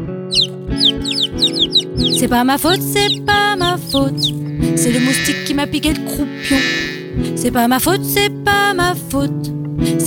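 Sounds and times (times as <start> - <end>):
chick peeping: 0.3 - 7.1
speech: 0.7 - 10.0.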